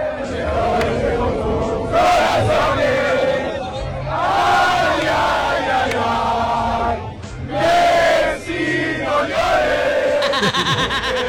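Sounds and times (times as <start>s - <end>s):
Spanish football crowd singing in unison to mock Messi: 0.0s - 11.2s
laughter: 10.1s - 11.2s.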